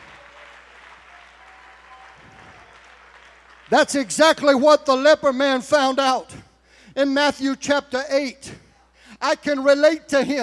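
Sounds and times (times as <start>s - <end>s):
audience clapping in praise: 0.0s - 4.1s
speech: 3.7s - 8.6s, 9.2s - 10.4s.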